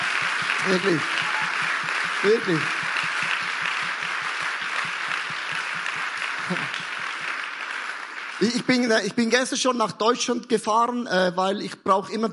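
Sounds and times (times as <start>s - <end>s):
large crowd applause: 0.0s - 9.4s
speech: 0.6s - 1.4s, 2.2s - 2.8s, 8.4s - 12.3s.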